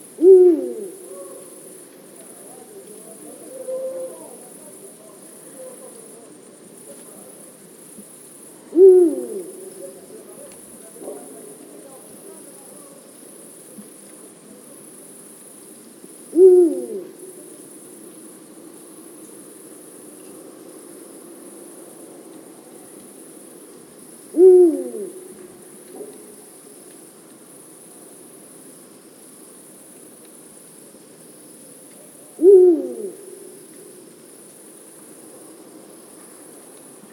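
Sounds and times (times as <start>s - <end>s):
eagle owl: 0.0s - 1.8s, 2.4s - 4.6s, 8.7s - 11.6s, 16.3s - 17.6s, 24.3s - 26.5s, 32.0s - 34.0s.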